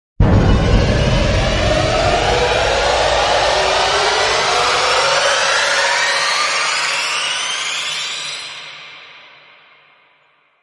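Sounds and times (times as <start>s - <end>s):
orchestral riser: 0.2s - 7.1s.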